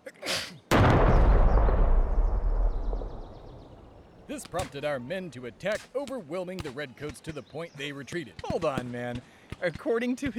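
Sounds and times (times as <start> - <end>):
gunshot fired at a bridge held by Redcoats: 0.7 - 4.9
speech: 4.3 - 10.3.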